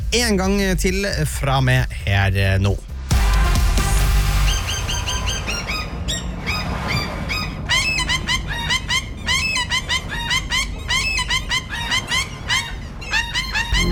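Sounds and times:
low rumbling background: 0.0s - 13.9s
speech: 0.1s - 2.9s
seagull squawking: 4.4s - 13.9s.

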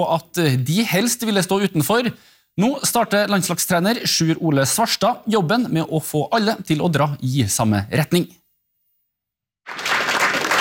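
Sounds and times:
speech: 0.0s - 8.4s
crowd applause welcoming Norway's new women's cross-country ski national team: 9.6s - 10.5s.

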